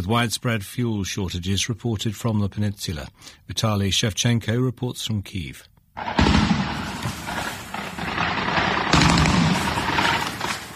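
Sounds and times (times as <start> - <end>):
speech: 0.0 - 6.6
Russian air defence firing at Ukrainian drones in Crimea: 6.0 - 10.7.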